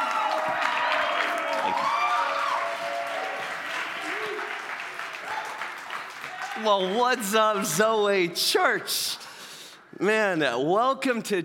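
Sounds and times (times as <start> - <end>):
whoops and shouted voices: 0.0 - 3.4
church congregation applauding their youth pastor: 0.0 - 8.3
speech: 6.6 - 9.2, 10.0 - 11.4.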